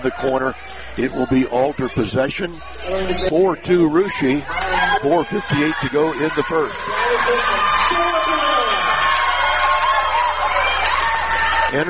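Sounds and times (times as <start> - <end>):
speech: 0.0 - 8.2
arena crowd applause and cheering: 4.5 - 11.8.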